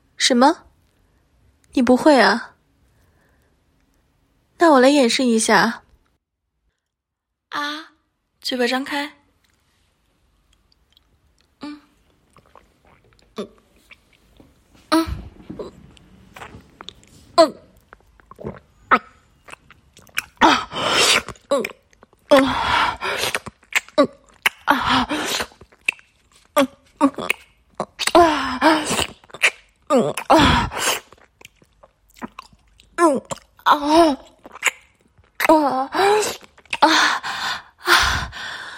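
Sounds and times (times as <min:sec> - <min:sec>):
speech: 0:00.3 - 0:00.7, 0:01.7 - 0:02.5, 0:04.6 - 0:05.8, 0:08.4 - 0:09.2, 0:13.4 - 0:13.6, 0:17.4 - 0:17.6, 0:21.5 - 0:23.4
person slurping and gulping a mouthful of water: 0:10.8 - 0:14.4, 0:15.2 - 0:37.4.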